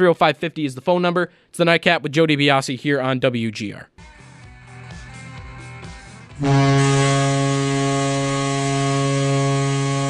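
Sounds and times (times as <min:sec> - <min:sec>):
speech: 0:00.0 - 0:04.1, 0:06.4 - 0:06.9
hockey goal horn: 0:06.4 - 0:10.0.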